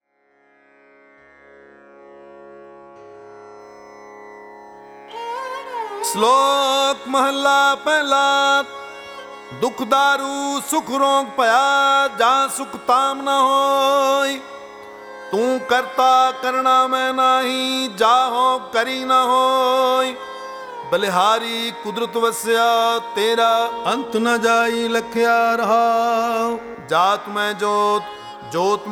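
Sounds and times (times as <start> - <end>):
chanting: 6.1 - 28.9.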